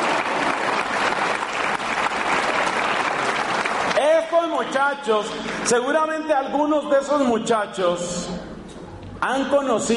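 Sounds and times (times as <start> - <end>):
group applauding each other: 0.0 - 4.7
speech: 4.8 - 8.5, 9.2 - 9.9.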